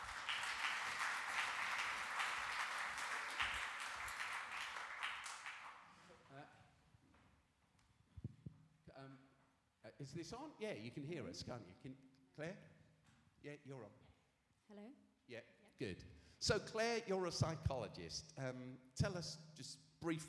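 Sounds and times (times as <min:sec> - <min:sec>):
audience applause: 0:00.0 - 0:06.0
speech: 0:10.0 - 0:12.8, 0:13.4 - 0:14.0, 0:14.7 - 0:20.2.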